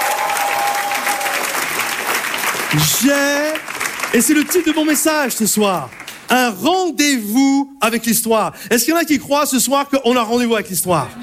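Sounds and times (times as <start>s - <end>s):
audience applause: 0.0s - 6.3s
speech: 2.7s - 11.2s.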